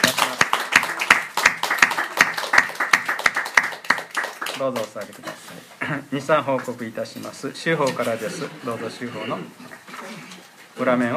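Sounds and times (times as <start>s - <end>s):
audience clapping: 0.0s - 5.2s
speech: 4.6s - 9.6s, 10.8s - 11.1s.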